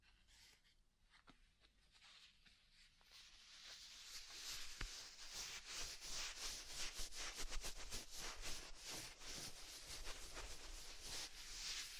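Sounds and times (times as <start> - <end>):
soft fluffy brushing and rubbing strokes: 3.0 - 11.9.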